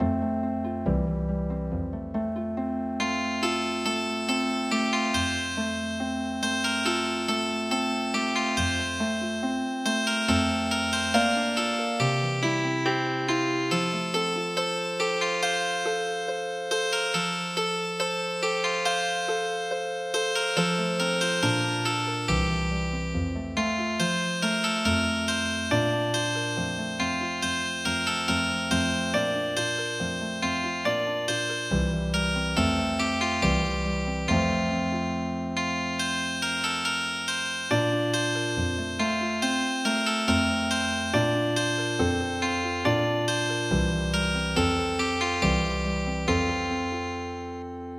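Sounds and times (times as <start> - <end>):
healing harp music: 0.0 - 47.9.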